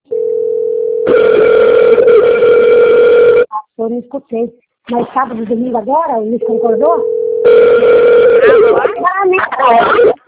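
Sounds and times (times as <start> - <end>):
telephone ringing with an incoming call: 0.1 - 3.5, 6.4 - 9.0
speech: 3.8 - 10.1
wavering voice-like sounds: 8.4 - 10.2.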